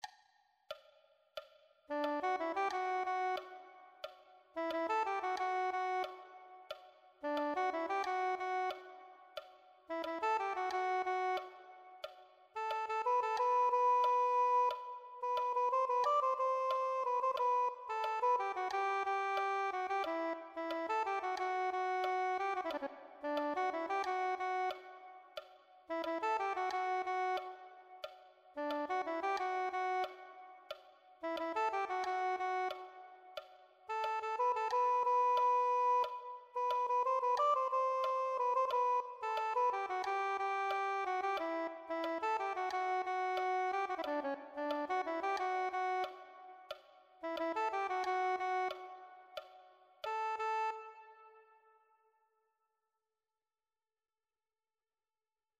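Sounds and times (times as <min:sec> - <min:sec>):
soprano saxophone: 0:01.9 - 0:51.9.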